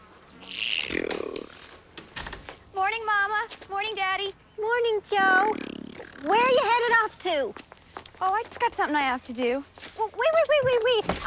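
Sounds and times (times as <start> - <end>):
bee buzzing in a garden: 0.3 - 1.5, 5.2 - 6.7
speech: 3.7 - 7.6, 8.2 - 11.2.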